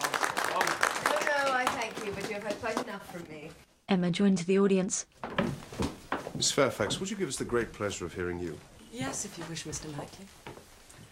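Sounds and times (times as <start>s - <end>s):
audience applause: 0.0s - 2.8s
speech: 2.6s - 5.3s, 6.4s - 10.4s.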